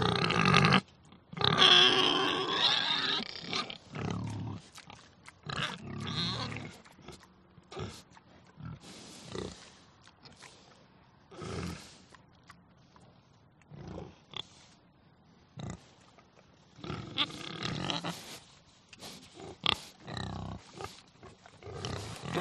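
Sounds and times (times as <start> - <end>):
pigs grunting and snorting: 0.0 - 10.7, 11.3 - 12.2, 13.7 - 14.7, 15.6 - 16.0, 16.8 - 18.4, 19.0 - 22.4
pigs squealing: 1.4 - 4.8, 5.5 - 7.2, 16.8 - 18.3, 21.7 - 22.4.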